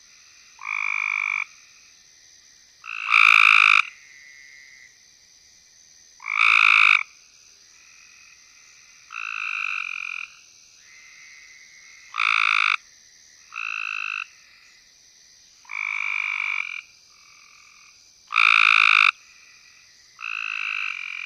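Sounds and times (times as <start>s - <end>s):
Cope's gray treefrog Hyla chrysoscelis trilling: 0.6s - 1.6s, 2.8s - 4.9s, 6.2s - 7.1s, 9.0s - 12.8s, 13.4s - 14.8s, 15.6s - 21.2s.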